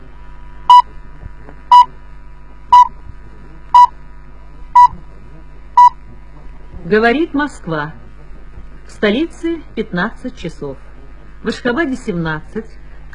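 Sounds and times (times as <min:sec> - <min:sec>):
radio precise time signal pips: 0:00.7 - 0:00.9, 0:02.7 - 0:03.0, 0:04.8 - 0:05.0, 0:05.8 - 0:06.0
speech: 0:06.9 - 0:08.0, 0:09.0 - 0:10.8, 0:11.4 - 0:13.1.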